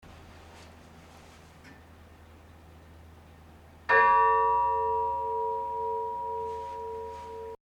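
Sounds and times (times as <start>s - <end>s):
bell ringing: 3.9s - 7.6s.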